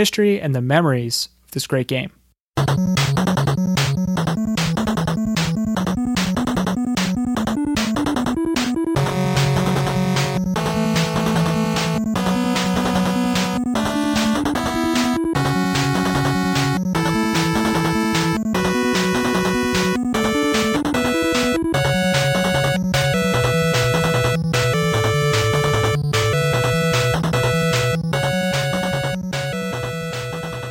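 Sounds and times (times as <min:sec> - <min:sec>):
speech: 0:00.0 - 0:03.2
upbeat chiptune video game stage theme music: 0:02.6 - 0:30.6.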